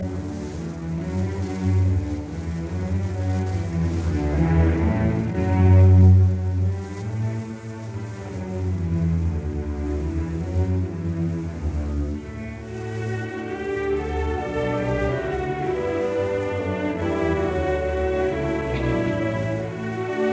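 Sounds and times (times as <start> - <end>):
choral symphony movement: 0.0 - 20.3.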